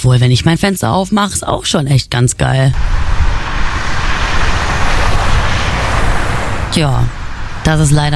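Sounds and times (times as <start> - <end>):
speech: 0.0 - 3.1, 6.8 - 8.1
street traffic heard through open window: 2.5 - 8.1.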